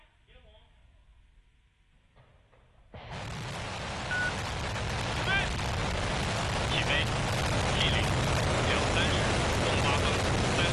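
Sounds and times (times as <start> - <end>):
Shenzhou 23 crewed spacecraft rocket launch roar: 2.9 - 10.7.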